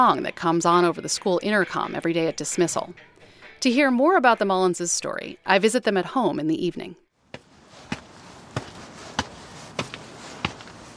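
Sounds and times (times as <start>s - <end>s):
speech: 0.0s - 7.0s
footsteps climbing steps: 7.3s - 10.9s.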